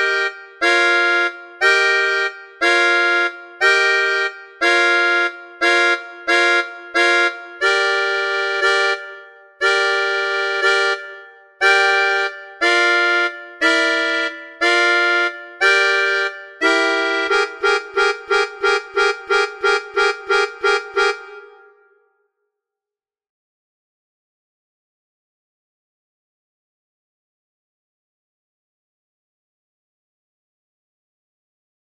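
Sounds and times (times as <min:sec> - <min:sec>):
melodica: 0:00.0 - 0:21.9.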